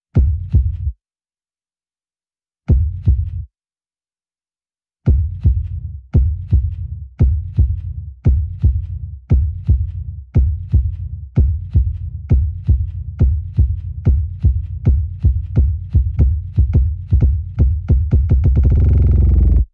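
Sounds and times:
heartbeat pumping blood: 0.2 - 0.9, 5.1 - 19.7.

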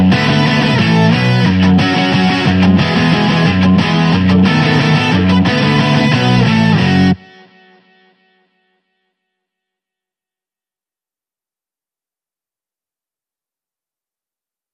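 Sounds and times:
guitar: 0.0 - 9.8.

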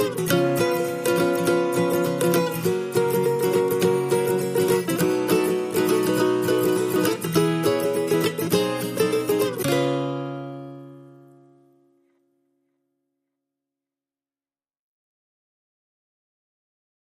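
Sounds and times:
guitars playing: 0.0 - 12.2.

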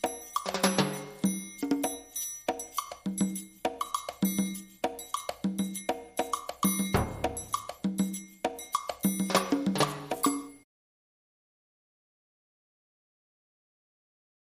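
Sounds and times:
highlife stereo percussion: 0.0 - 10.6.

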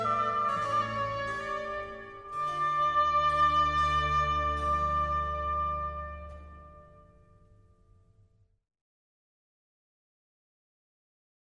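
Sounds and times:
oboe concerto in D major: 0.0 - 7.5.

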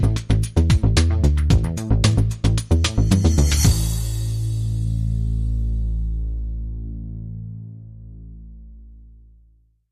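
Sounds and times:
promo music: 0.0 - 7.6.

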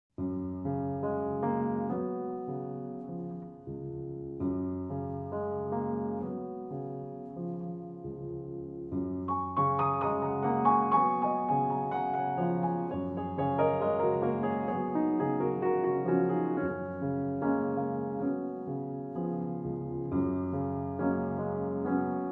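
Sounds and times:
solo piano: 0.2 - 22.3.

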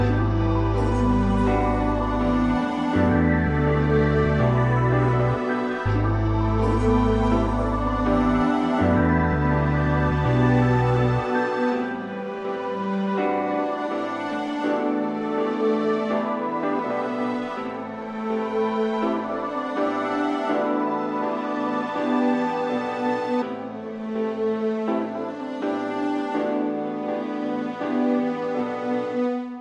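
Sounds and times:
music without drums: 0.0 - 29.5.

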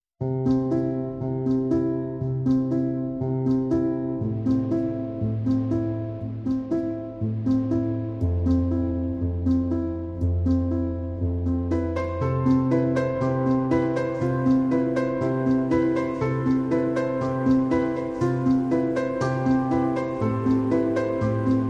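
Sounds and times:
pianos: 0.2 - 21.6.

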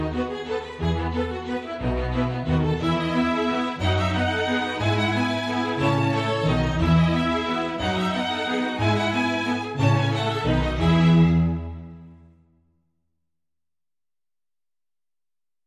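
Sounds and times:
strings playing a minuet: 0.0 - 12.1.

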